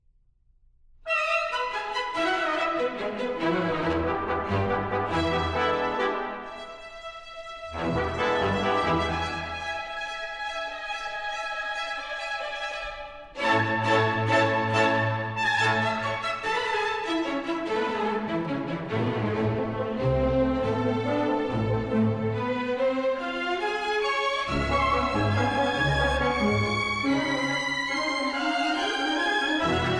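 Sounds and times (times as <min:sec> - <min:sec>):
upbeat symphony: 0:01.1 - 0:29.9.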